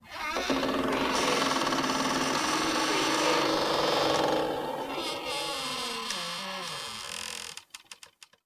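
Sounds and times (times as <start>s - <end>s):
long creak: 0.0s - 8.3s.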